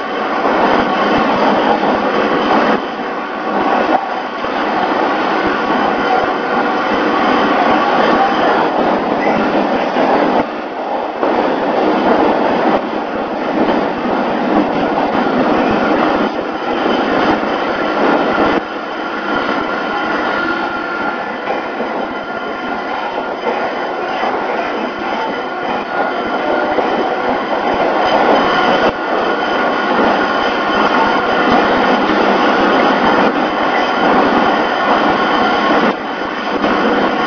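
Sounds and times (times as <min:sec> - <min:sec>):
Oigawa Railway 421 series train running on departure from Sasamado Station: 0:00.0 - 0:37.2.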